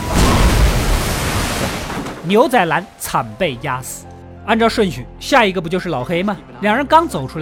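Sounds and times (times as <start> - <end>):
heavy bathtub crashing down from upstairs: 0.1 - 2.3
speech: 2.3 - 7.4.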